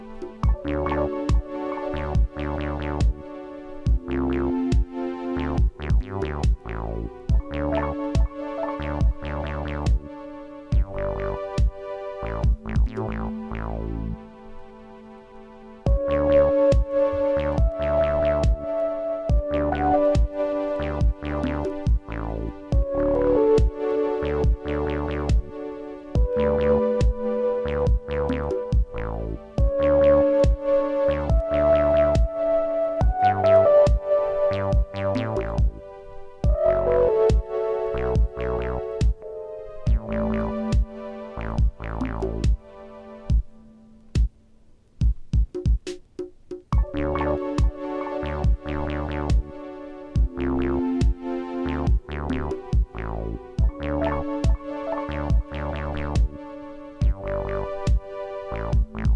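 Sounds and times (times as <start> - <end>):
instrumental chillwave music: 0.0 - 59.1.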